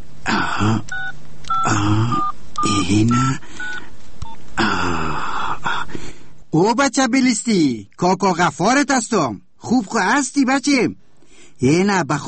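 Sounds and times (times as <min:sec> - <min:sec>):
person muttering: 0:00.2 - 0:03.4, 0:04.6 - 0:05.9
speech: 0:00.6 - 0:01.1, 0:01.7 - 0:03.6, 0:06.5 - 0:11.0, 0:11.6 - 0:12.2
telephone number being dialed with keypad beeps: 0:00.9 - 0:04.4.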